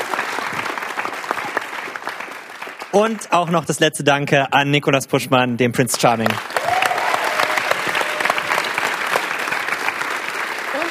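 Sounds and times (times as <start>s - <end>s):
applause: 0.0s - 3.8s, 6.1s - 10.9s
speech: 2.9s - 6.5s.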